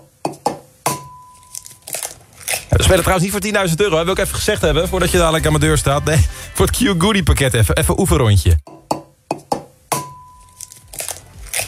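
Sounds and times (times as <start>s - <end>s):
egg cracking open: 1.4s - 2.7s, 10.5s - 11.6s
speech: 2.9s - 8.7s.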